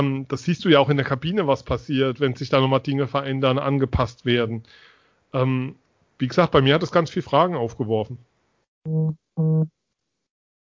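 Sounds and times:
speech: 0.0s - 9.8s
phone notification for an incoming message: 8.9s - 9.7s.

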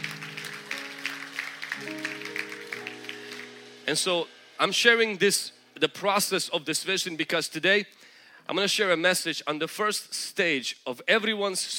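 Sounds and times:
audience clapping: 0.0s - 3.8s
speech: 1.8s - 2.1s, 3.9s - 11.7s.

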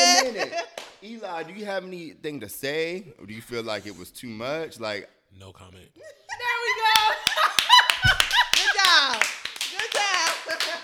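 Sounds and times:
people laughing: 0.0s - 0.8s, 6.0s - 9.2s
speech: 0.5s - 7.4s
hand claps: 0.7s - 1.0s, 6.9s - 10.8s.

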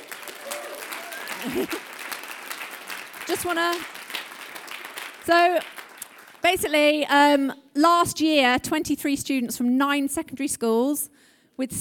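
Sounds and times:
audience vocal sound or cheer: 0.0s - 3.3s
crowd applause: 0.0s - 6.5s
laughter: 0.4s - 2.1s
speech: 1.4s - 1.9s, 3.3s - 4.0s, 5.3s - 5.7s, 6.4s - 11.7s.

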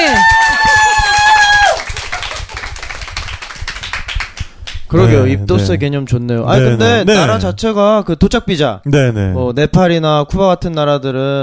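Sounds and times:
cheering shout: 0.0s - 1.9s
hand clapping: 0.2s - 4.9s
speech: 4.9s - 11.4s.

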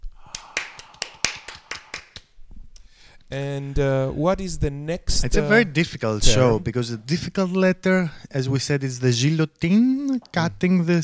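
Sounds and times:
small round of applause: 0.2s - 2.3s
speech: 3.3s - 11.0s.

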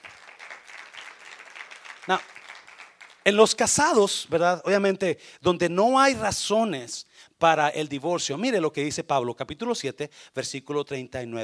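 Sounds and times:
audience clapping loudly: 0.0s - 3.9s
speech: 2.1s - 2.3s, 3.2s - 11.4s.

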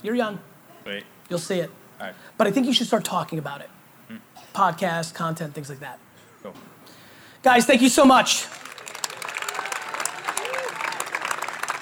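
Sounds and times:
speech: 0.0s - 6.8s, 7.4s - 8.6s
audience clapping: 7.9s - 11.8s.

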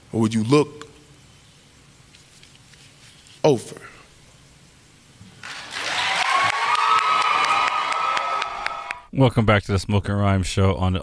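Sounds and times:
speech: 0.1s - 0.8s, 3.5s - 4.0s, 9.2s - 11.0s
audience clapping: 5.4s - 9.1s.

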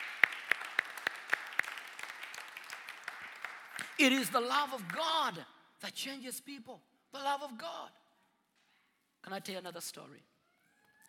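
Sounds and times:
audience applause: 0.0s - 4.1s
speech: 4.0s - 8.0s, 9.2s - 10.3s.

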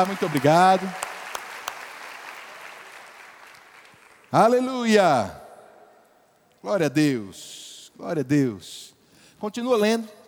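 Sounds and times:
speech: 0.0s - 1.1s, 4.3s - 5.4s, 6.6s - 10.2s
audience applause: 0.0s - 4.3s.

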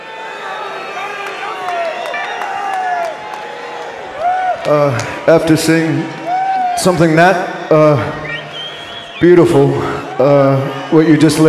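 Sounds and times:
crowd chanting and cheering: 0.0s - 11.4s
speech: 4.7s - 6.2s, 6.8s - 8.2s, 9.2s - 11.4s.

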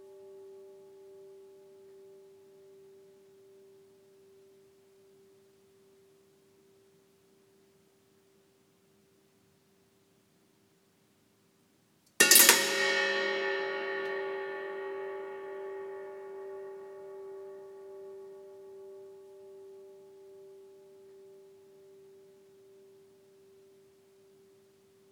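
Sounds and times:
faint sustained ringing hum: 0.0s - 8.4s, 12.2s - 25.1s
sharp metallic strike clanging with long reverb: 12.2s - 16.3s.

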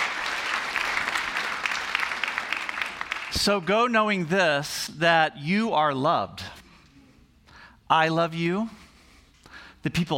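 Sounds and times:
audience applause: 0.0s - 3.4s
speech: 3.3s - 6.5s, 7.9s - 8.8s, 9.8s - 10.1s.

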